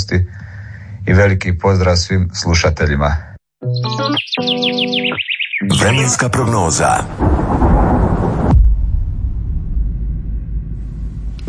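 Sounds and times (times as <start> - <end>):
speech: 0.1 - 8.4
thunder: 7.0 - 11.4.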